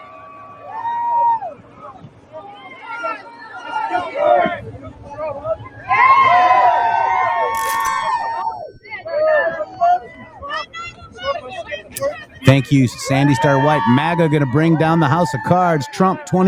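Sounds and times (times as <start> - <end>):
crowd shouting and cheering at political rally: 0.0 - 10.7, 11.9 - 16.4
speech: 12.5 - 16.4.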